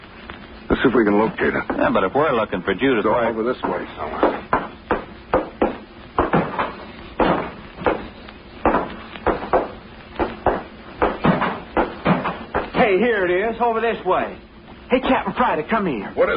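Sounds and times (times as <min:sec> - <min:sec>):
speech: 0:00.8 - 0:04.6, 0:13.6 - 0:16.3
loose open hatch banging on a ship: 0:03.4 - 0:13.0.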